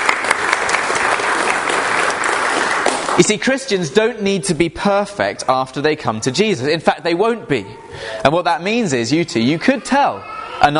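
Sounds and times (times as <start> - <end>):
audience round of applause: 0.0 - 3.6
speech: 3.2 - 10.7.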